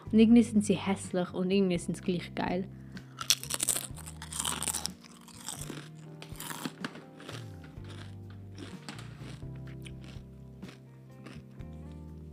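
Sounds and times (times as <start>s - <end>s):
speech: 0.1s - 2.8s
crunching natural potato chips with Swiss alpine salt and rapeseed oil: 3.1s - 11.5s.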